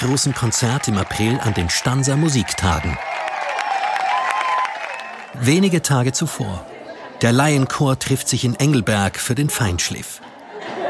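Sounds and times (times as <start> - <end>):
speech: 0.0 - 3.3, 5.4 - 10.3
concert audience applauding: 0.0 - 6.6
laughter: 5.4 - 10.8.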